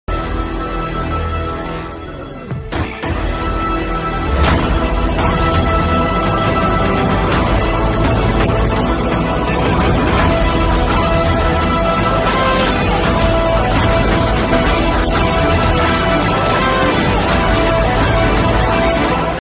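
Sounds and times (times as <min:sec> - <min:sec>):
teaser background music: 0:00.1 - 0:19.3.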